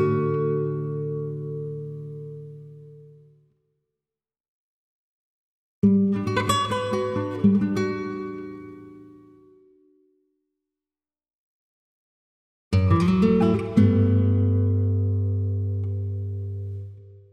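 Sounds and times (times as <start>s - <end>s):
guitar melody: 0.0s - 3.3s, 6.1s - 9.4s, 12.8s - 17.3s.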